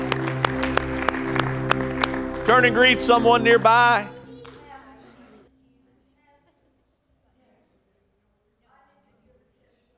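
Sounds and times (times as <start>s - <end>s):
audience clapping in praise: 0.0s - 5.4s
speech: 2.5s - 4.1s.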